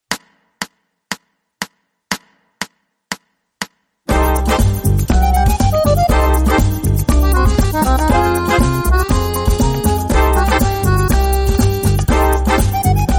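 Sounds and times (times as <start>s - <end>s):
fast Latin music: 4.1s - 13.1s.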